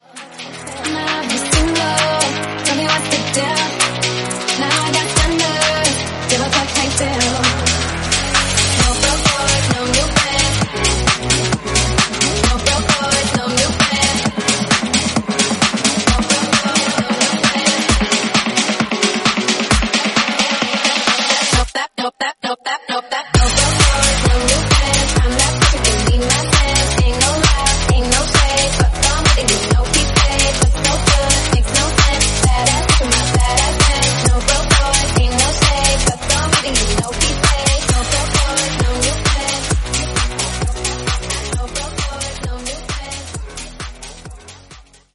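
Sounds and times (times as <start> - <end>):
tech house music in A flat minor: 0.0 - 21.8, 23.3 - 45.1.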